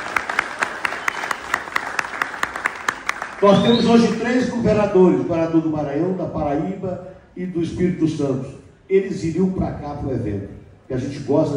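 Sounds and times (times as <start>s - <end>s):
audience applause: 0.0s - 4.1s
speech: 3.4s - 11.5s.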